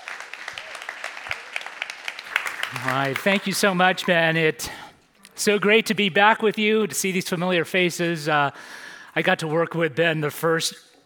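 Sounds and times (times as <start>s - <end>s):
audience applause: 0.0s - 4.2s
speech: 2.7s - 4.8s, 5.4s - 10.9s.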